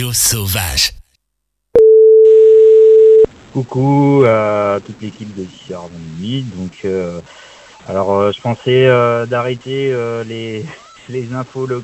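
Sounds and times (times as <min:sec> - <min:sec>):
speech: 0:00.0 - 0:01.0, 0:03.6 - 0:11.8
answering machine tone: 0:01.8 - 0:03.3.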